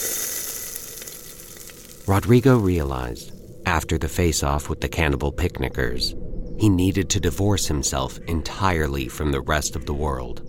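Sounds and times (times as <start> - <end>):
meat sizzling on a grill: 0.0 - 2.1
speech: 2.1 - 10.4.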